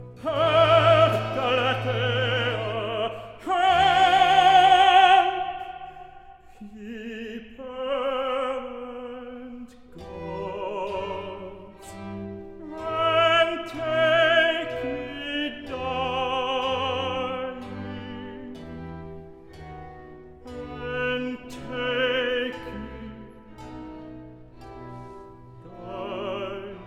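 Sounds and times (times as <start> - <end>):
recitative singing: 0.0 - 19.8, 20.4 - 26.8.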